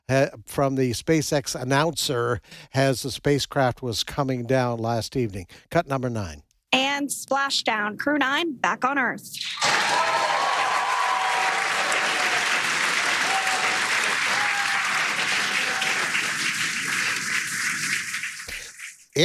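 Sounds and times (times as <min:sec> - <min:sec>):
speech: 0:00.1 - 0:10.1
people clapping after spacecraft splashdown: 0:09.6 - 0:19.2.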